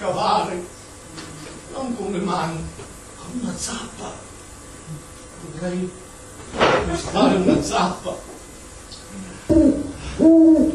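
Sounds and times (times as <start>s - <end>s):
speech: 2.3s - 2.9s, 3.6s - 4.3s, 4.9s - 6.0s, 6.9s - 8.3s
owl hooting at night: 9.5s - 10.7s.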